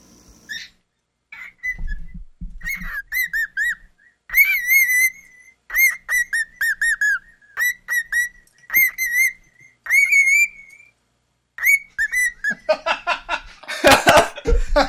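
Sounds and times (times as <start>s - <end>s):
pet cockatoo whistling: 1.4s - 11.0s, 11.6s - 12.7s
laughter: 12.5s - 14.8s.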